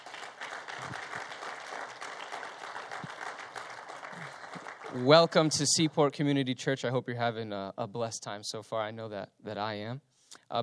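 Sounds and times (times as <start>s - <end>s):
crowd applauding: 0.0s - 5.8s
speech: 4.9s - 10.6s.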